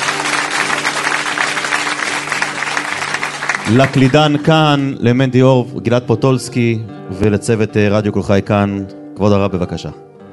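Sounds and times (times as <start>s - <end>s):
audience applause: 0.0s - 4.8s
speech: 3.7s - 10.0s.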